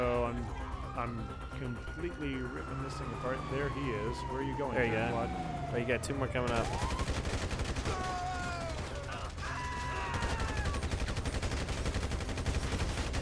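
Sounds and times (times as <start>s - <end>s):
speech: 0.4s - 8.1s
rapid automatic gunfire in a shooting video game: 6.4s - 13.2s.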